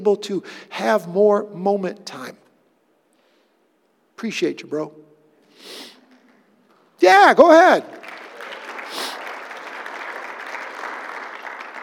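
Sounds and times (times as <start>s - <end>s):
speech: 0.0s - 2.4s, 4.2s - 6.0s, 7.0s - 8.0s
audience applause: 7.9s - 11.8s.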